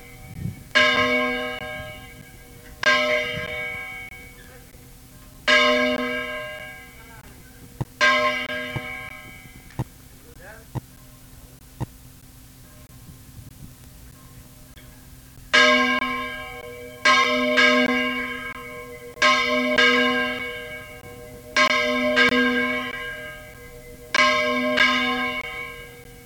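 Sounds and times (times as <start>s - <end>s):
bell: 0.0s - 7.3s, 8.0s - 9.7s, 15.6s - 26.2s.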